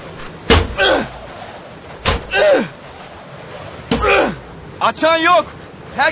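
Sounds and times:
iron bar banging on a door: 0.5s - 0.8s, 2.0s - 2.3s, 3.9s - 4.2s
speech: 4.8s - 6.1s.

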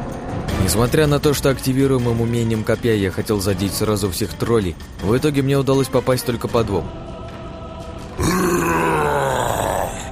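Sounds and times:
speech: 0.6s - 7.1s
monster roar of pain and rage: 8.2s - 10.1s.

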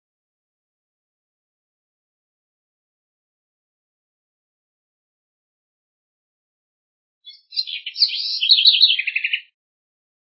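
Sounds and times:
house wren singing: 7.2s - 9.6s.

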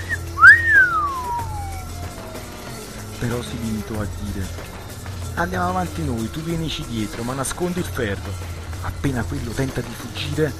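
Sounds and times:
man giving an admiring whistle at a Smith & Wesson gun: 0.0s - 2.2s
speech: 3.2s - 4.8s, 5.4s - 10.5s.

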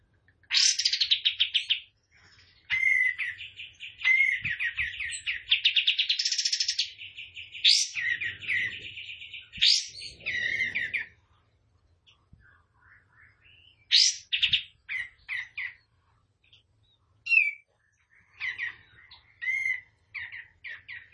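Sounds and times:
tembakan bird song of trills and buzzy phrases: 0.4s - 21.1s.

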